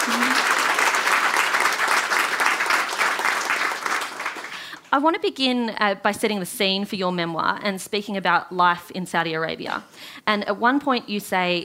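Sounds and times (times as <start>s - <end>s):
audience applauding at the Sydney Writers Festival: 0.0s - 4.9s
speech: 4.9s - 11.6s.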